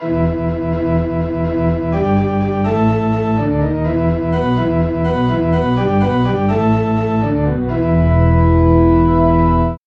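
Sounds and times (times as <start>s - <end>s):
church organ bass: 0.0s - 9.8s.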